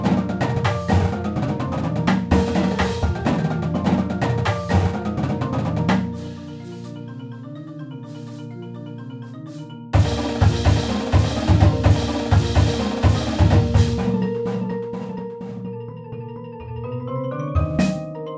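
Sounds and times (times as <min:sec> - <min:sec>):
hoedown percussion: 0:00.0 - 0:07.1, 0:09.4 - 0:15.8, 0:17.6 - 0:18.2.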